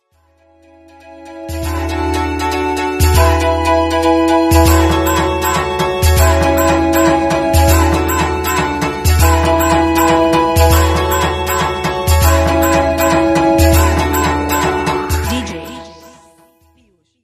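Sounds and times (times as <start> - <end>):
Oppo K3 phone ringtone: 1.3 - 16.5.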